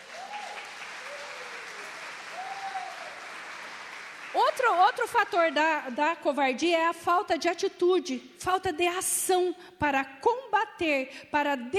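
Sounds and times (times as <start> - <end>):
audience applause: 0.0 - 5.7
speech: 4.4 - 11.7.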